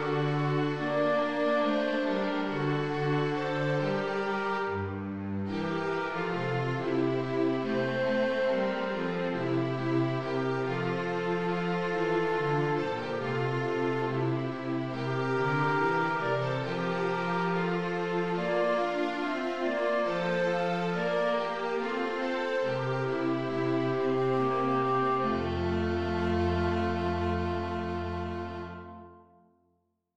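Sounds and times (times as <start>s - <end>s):
instrumental music: 0.0s - 29.6s.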